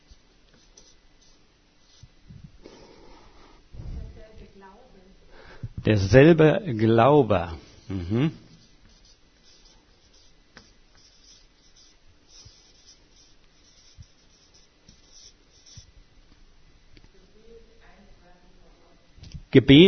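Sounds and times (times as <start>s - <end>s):
pen writing on paper: 0.0s - 2.1s, 8.6s - 15.9s
speech: 5.8s - 8.4s, 19.6s - 19.8s.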